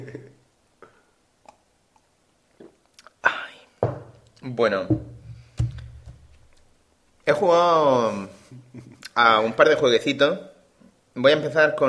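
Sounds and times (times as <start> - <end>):
person taking a swig of Sputnik: 1.4 - 3.2
speech: 4.4 - 5.1, 7.3 - 8.4, 9.2 - 10.5, 11.2 - 11.8.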